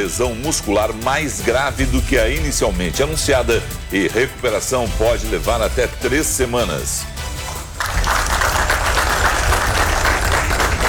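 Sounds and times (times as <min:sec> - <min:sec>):
speech: 0:00.0 - 0:07.3
applause for a hospital patient's discharge: 0:07.4 - 0:10.8.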